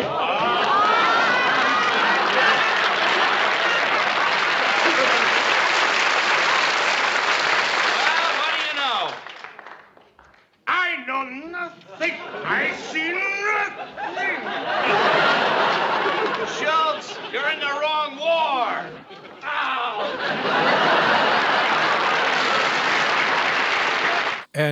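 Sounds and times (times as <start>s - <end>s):
laughter: 0.0s - 6.6s, 11.7s - 24.7s
studio audience applause and cheering: 0.0s - 10.4s, 19.9s - 24.7s
man speaking: 24.5s - 24.7s.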